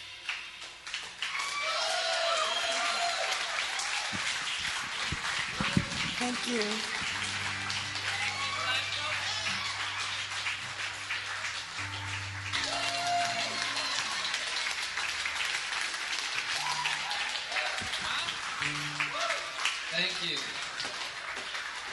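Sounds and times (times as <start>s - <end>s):
audience clapping: 0.2s - 21.9s
speech: 6.2s - 7.0s.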